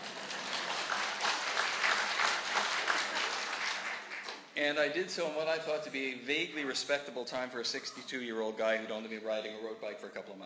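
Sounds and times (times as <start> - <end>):
audience applause: 0.0 - 4.5
speech: 4.6 - 10.4.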